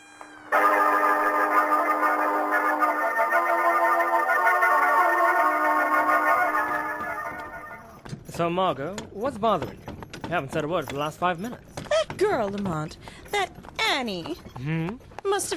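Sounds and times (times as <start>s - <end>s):
police sirens: 0.2s - 8.0s
speech: 8.4s - 15.5s.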